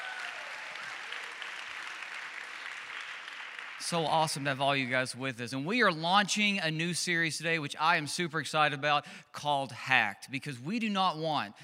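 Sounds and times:
church congregation applauding to welcome the online audience: 0.0s - 5.0s
speech: 3.8s - 11.6s.

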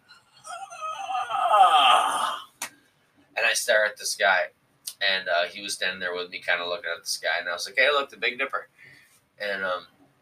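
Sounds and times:
yawn: 0.4s - 2.6s
speech: 3.6s - 8.7s, 9.4s - 10.0s.

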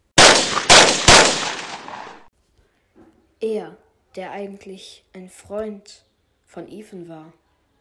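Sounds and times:
video game gunshots with echo: 0.2s - 2.3s
speech: 3.4s - 7.4s.

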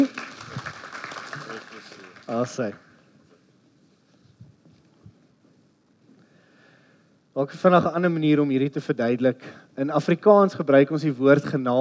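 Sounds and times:
crowd clapping: 0.0s - 3.0s
speech: 2.3s - 2.9s, 7.4s - 11.7s.

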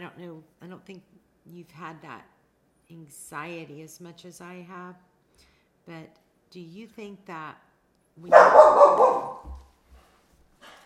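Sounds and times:
speech: 0.1s - 9.7s
dog barking: 8.3s - 9.6s.

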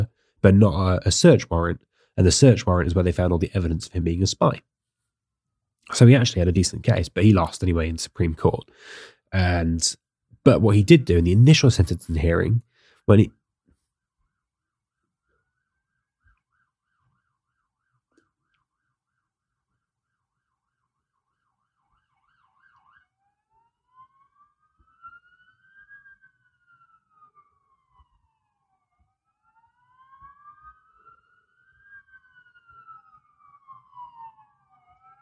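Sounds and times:
fire engine sirens of three fire engines arriving outside: 0.0s - 4.6s, 5.9s - 9.9s, 10.5s - 13.3s, 20.5s - 35.1s
speech: 0.4s - 4.7s, 5.9s - 13.4s.

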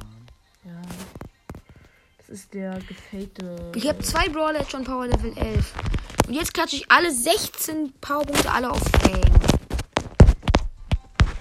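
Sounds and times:
speech: 2.3s - 9.4s
dog paws and claws clicking on hard floor: 2.8s - 11.3s.

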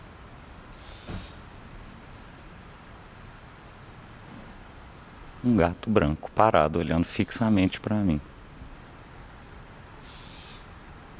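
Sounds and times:
low rumble and hiss: 0.0s - 11.1s
house wren calling: 0.8s - 1.5s, 7.2s - 7.8s, 10.0s - 10.8s
speech: 5.4s - 8.3s.

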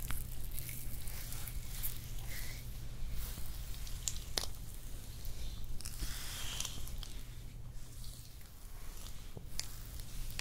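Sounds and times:
hand massage squishing and rubbing: 0.0s - 10.4s.

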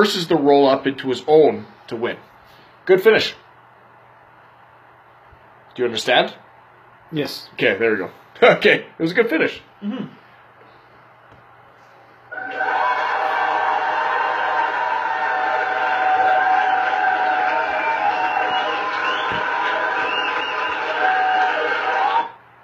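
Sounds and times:
speech: 0.0s - 2.3s, 2.9s - 3.4s, 5.8s - 6.4s, 7.1s - 10.2s
audience applause: 12.3s - 22.4s
cheering voices: 12.3s - 22.4s.

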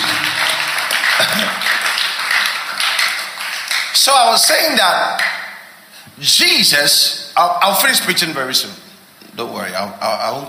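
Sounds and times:
audience clapping: 0.0s - 5.6s
speech: 4.0s - 5.4s, 6.2s - 8.8s, 9.4s - 10.4s.

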